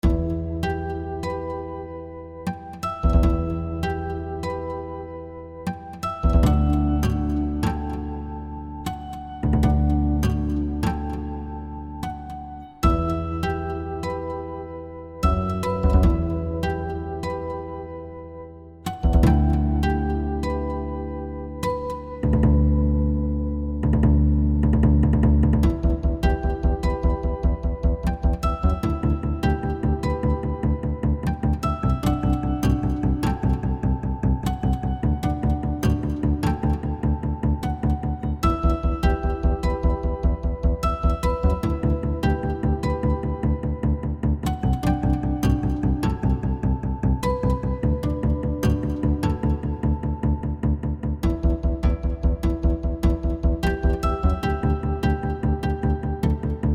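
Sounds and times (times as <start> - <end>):
guitar playing: 0.0 - 56.7.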